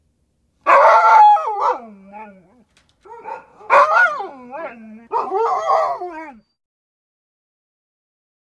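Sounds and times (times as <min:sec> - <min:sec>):
dog howling: 0:00.7 - 0:06.6.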